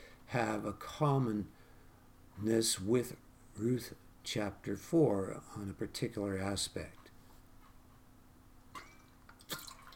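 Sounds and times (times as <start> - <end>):
speech: 0.3 - 1.6, 2.4 - 7.0
speaker drinking a little water: 8.8 - 9.9.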